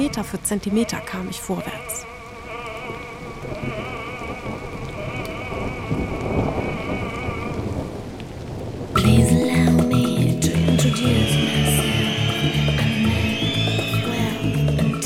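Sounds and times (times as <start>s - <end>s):
speech: 0.0s - 2.1s
storm wind: 0.0s - 15.0s.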